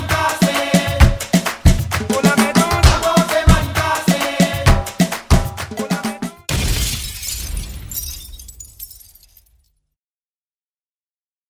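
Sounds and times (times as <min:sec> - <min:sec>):
maloya remix: 0:00.0 - 0:06.5.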